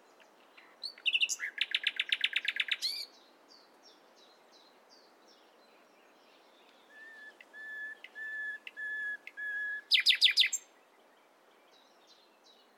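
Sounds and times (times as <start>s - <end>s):
Common nightingale Luscinia megarhynchos whistled song: 0.8s - 3.2s, 6.3s - 12.7s.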